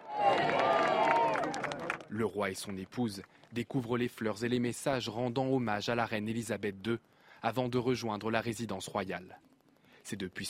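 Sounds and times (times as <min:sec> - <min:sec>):
crowd applauding outside palace: 0:00.0 - 0:03.3
speech: 0:02.1 - 0:10.4.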